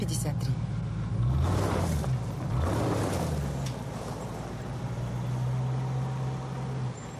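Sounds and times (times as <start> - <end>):
yellow Ford Crown taxi engine pulling away: 0.6 - 7.1.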